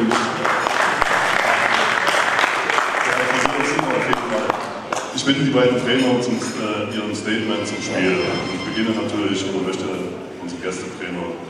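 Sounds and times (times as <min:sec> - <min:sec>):
applause at a football press conference after FC Meuselwitz versus Carl Zeiss Jena: 0:00.0 - 0:05.1
speech: 0:05.3 - 0:11.4.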